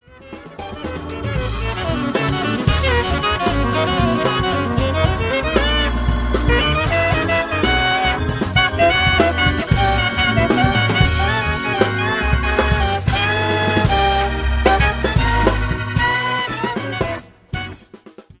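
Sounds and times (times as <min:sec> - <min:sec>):
jazz music: 0:00.0 - 0:18.3.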